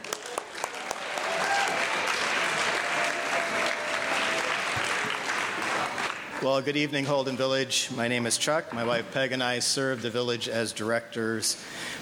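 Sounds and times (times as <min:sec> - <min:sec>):
audience clapping: 0:00.0 - 0:06.5
speech: 0:06.4 - 0:12.0.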